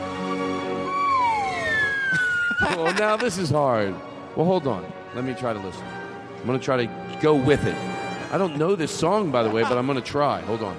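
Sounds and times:
slide whistle solo with reverb: 0:00.7 - 0:02.9
laughter: 0:02.1 - 0:03.6, 0:08.2 - 0:10.2
speech: 0:02.6 - 0:10.7.

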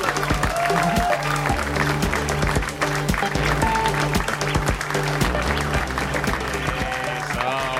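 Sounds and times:
audience applause for comedian: 0:00.0 - 0:07.7.

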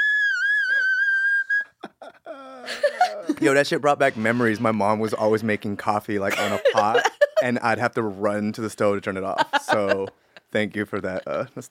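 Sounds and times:
high vocal whistle tone: 0:00.0 - 0:01.8
laughter: 0:01.8 - 0:03.6, 0:06.2 - 0:07.8, 0:09.2 - 0:11.6
speech: 0:02.7 - 0:11.6.

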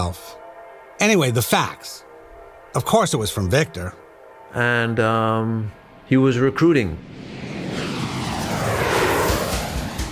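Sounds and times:
speech: 0:00.0 - 0:00.4, 0:01.0 - 0:02.1, 0:02.7 - 0:07.3
Challenger 601 business jet engine roar in flight to Baku Airport: 0:05.8 - 0:10.1.

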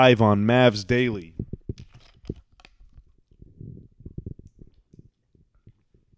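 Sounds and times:
speech: 0:00.0 - 0:01.3
person drinking a sip of water: 0:01.3 - 0:06.1.

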